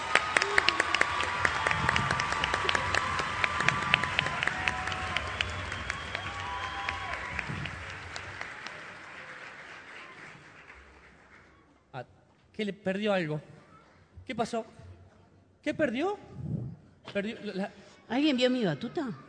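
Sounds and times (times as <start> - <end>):
audience applause: 0.0 - 11.6
speech: 12.6 - 13.5, 14.3 - 14.8, 15.6 - 16.4, 17.2 - 19.2.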